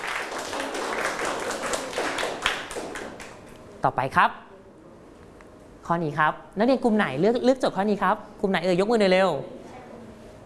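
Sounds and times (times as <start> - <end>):
classroom students clapping: 0.0 - 3.5
speech: 3.8 - 4.5, 5.9 - 9.6.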